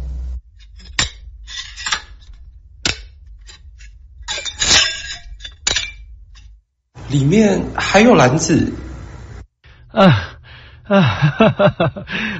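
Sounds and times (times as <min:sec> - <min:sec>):
metallic clanks and rattling of a locked box being forced open: 0:00.6 - 0:06.6
speech: 0:07.1 - 0:08.8, 0:10.0 - 0:10.3, 0:10.9 - 0:12.3
laughter: 0:10.9 - 0:12.3.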